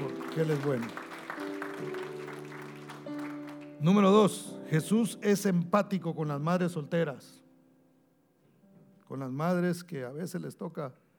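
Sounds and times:
audience clapping: 0.0 - 4.2
speech: 0.4 - 1.0, 3.8 - 7.4, 9.1 - 11.0.

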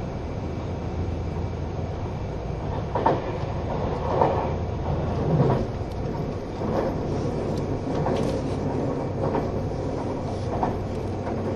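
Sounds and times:
steady low rumble of engine and motor inside a quiet green car train: 0.0 - 11.5
train wheels clattering: 2.7 - 11.5.

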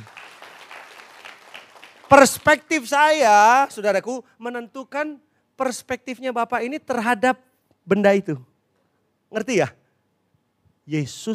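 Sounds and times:
audience applause: 0.0 - 2.7
speech: 2.1 - 8.5, 9.3 - 9.8, 10.9 - 11.3.

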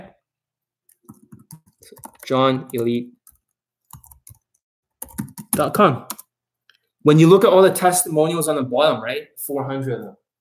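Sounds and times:
typing on a computer keyboard: 0.9 - 6.3
speech: 1.9 - 3.2, 5.6 - 6.2, 7.0 - 10.2.

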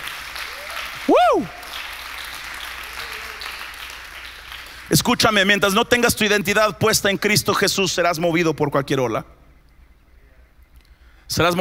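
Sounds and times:
loud audience applause: 0.0 - 5.1
speech: 4.9 - 9.4, 11.3 - 11.5.

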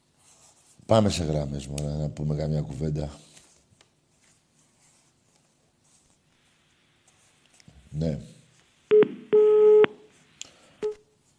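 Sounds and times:
speech: 0.9 - 3.3, 8.0 - 8.3
telephone call tone: 8.9 - 10.0.

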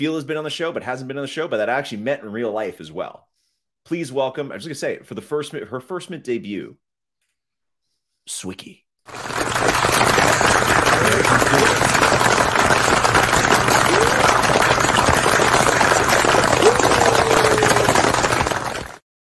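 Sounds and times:
speech: 0.0 - 6.8, 8.2 - 11.8
audience applause: 9.1 - 19.0.

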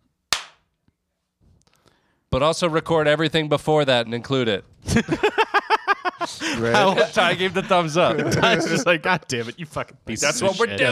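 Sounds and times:
single hand clap: 0.3 - 0.6
speech: 2.3 - 5.4, 6.3 - 10.8
laughter: 4.9 - 9.1.

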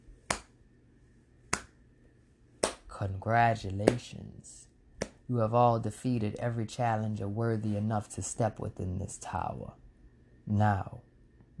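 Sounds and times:
slow resounding hand clap: 1.5 - 1.8, 2.6 - 2.9
speech: 3.0 - 4.7, 5.3 - 9.8, 10.5 - 11.5.

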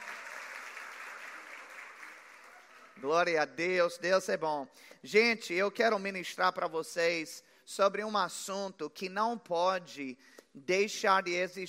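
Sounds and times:
audience applause: 0.0 - 3.1
speech: 3.0 - 11.6.

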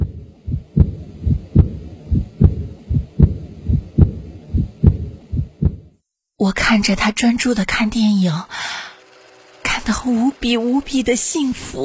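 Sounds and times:
fast heartbeat: 0.0 - 6.0
speech: 6.4 - 8.9, 9.8 - 11.8.

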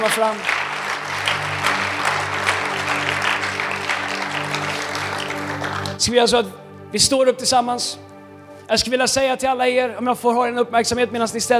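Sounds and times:
speech: 0.0 - 0.6, 6.0 - 8.1, 8.7 - 11.5
audience applause: 0.0 - 6.0.

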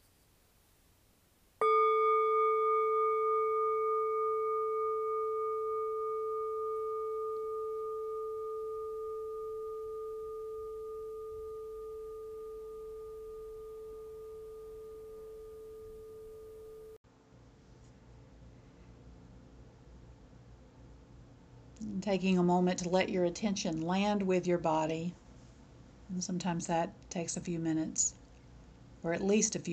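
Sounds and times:
meditation bell ringing: 1.6 - 17.0
speech: 22.0 - 25.2, 26.2 - 28.2, 29.0 - 29.7.

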